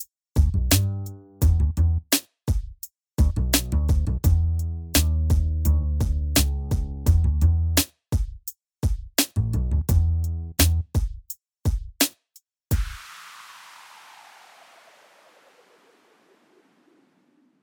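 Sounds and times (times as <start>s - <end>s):
music beat: 0.0s - 1.8s, 2.5s - 12.1s.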